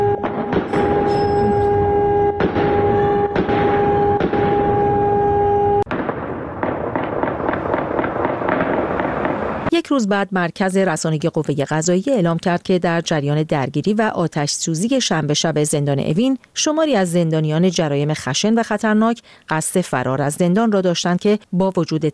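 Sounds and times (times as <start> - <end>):
repeated gunfire: 0.2 - 1.4, 2.4 - 5.0, 5.8 - 9.7
several explosions: 0.2 - 9.7
speech: 9.9 - 22.1.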